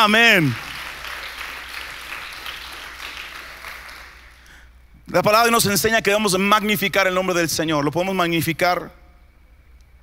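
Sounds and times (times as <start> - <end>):
speech: 0.0 - 0.7, 5.1 - 9.0
audience applause: 0.0 - 4.4.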